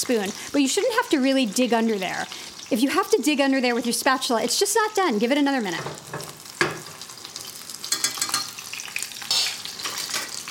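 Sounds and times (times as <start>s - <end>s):
speech: 0.0s - 6.4s
cutlets frying in bubbling oil in a shaken pan: 0.0s - 10.4s.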